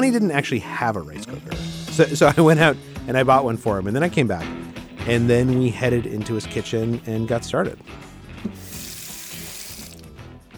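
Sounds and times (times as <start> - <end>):
speech: 0.0 - 8.7
water running from a kitchen tap to wash rice: 8.5 - 10.1.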